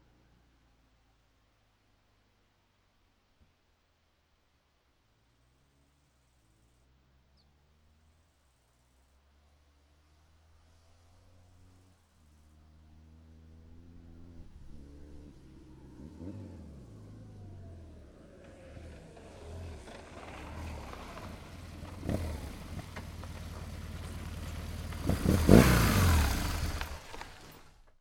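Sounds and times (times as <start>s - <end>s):
BMW R1100GS sound: 10.1s - 27.9s.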